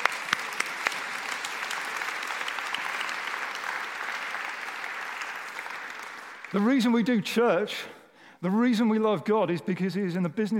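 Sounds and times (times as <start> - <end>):
audience clapping: 0.0 - 7.2
speech: 6.5 - 10.5.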